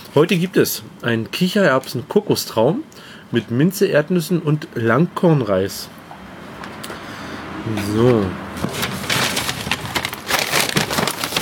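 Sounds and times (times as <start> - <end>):
speech: 0.2 - 6.0, 7.6 - 8.9
paper meal-kit bag being torn open: 8.6 - 11.4.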